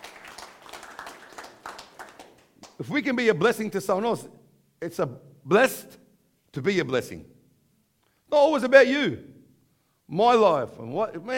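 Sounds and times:
audience clapping: 0.0s - 2.9s
speech: 2.8s - 6.0s, 6.6s - 7.3s, 8.3s - 9.3s, 10.1s - 11.3s.

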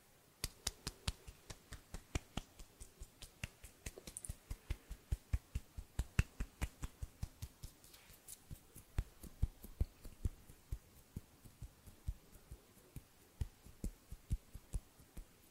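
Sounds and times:
faint low hum: 0.0s - 15.4s
finger snaps around the mic: 0.4s - 7.7s.

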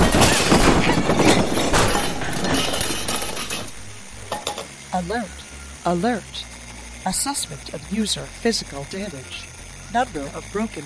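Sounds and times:
body crashing into a pile of junk: 0.0s - 4.7s
speech: 5.0s - 10.8s.

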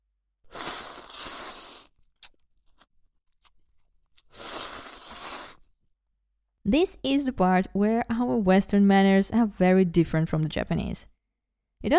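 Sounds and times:
ramen noodles slurping: 0.5s - 5.7s
speech: 6.7s - 11.1s.

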